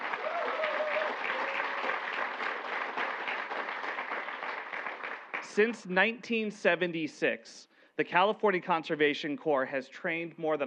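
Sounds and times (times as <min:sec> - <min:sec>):
audience applause: 0:00.0 - 0:05.7
speech: 0:05.6 - 0:10.6.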